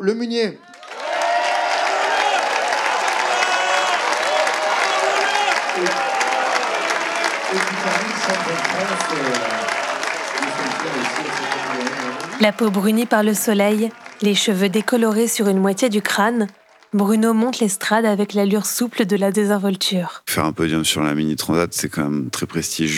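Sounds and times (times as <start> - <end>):
speech: 0.0 - 0.8, 7.5 - 9.8, 10.4 - 22.9
crowd applause: 0.6 - 17.7.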